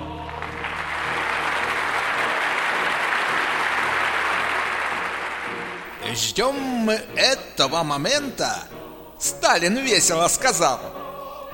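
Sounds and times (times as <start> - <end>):
stormy applause interrupting a speech: 0.0 - 6.0
speech: 6.1 - 11.5.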